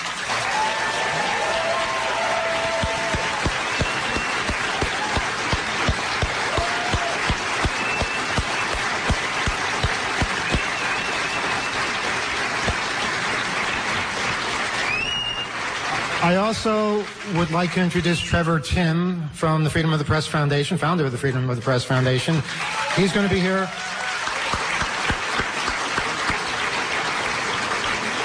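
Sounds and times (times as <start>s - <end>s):
audience applauding: 0.0s - 18.6s, 21.6s - 28.2s
speech: 16.3s - 23.9s.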